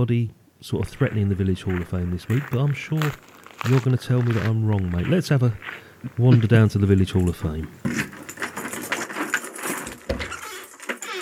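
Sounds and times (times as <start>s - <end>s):
speech: 0.0s - 8.0s
keys jangling: 8.1s - 11.1s.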